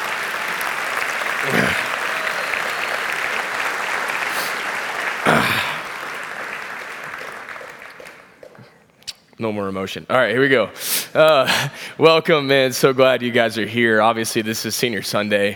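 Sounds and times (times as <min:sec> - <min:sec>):
crowd whooping: 0:00.0 - 0:05.4
crowd applause: 0:00.0 - 0:08.7
speech: 0:09.4 - 0:15.5.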